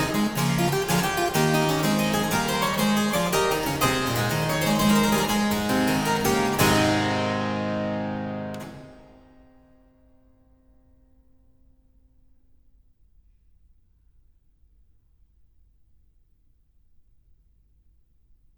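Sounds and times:
harpsichord gigue in A major: 0:00.0 - 0:09.5.

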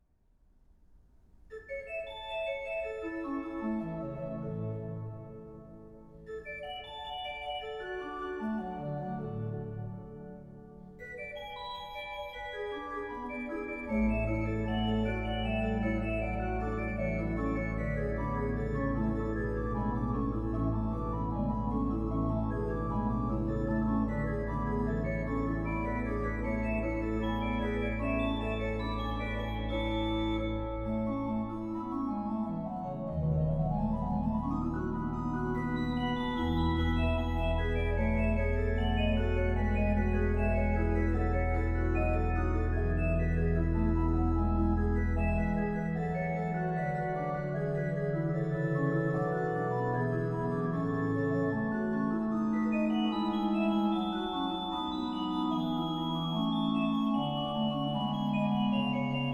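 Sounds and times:
organ prelude in A major: 0:01.5 - 0:59.3.

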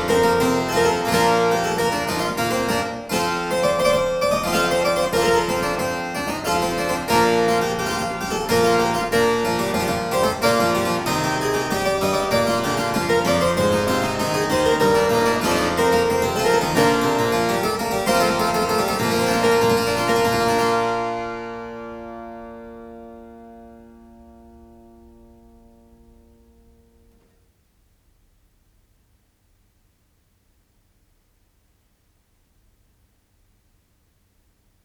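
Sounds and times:
galliard on harpsichord: 0:00.0 - 0:22.4.

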